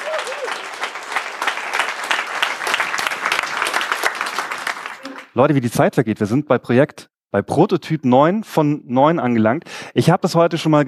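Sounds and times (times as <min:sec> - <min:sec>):
whistle or cheer: 0:00.0 - 0:00.6
audience applause: 0:00.0 - 0:05.4
speech: 0:05.4 - 0:10.8.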